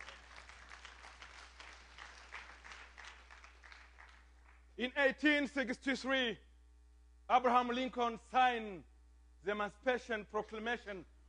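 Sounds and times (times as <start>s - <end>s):
audience clapping hands: 0.0s - 4.8s
speech: 4.8s - 6.5s, 7.3s - 11.1s.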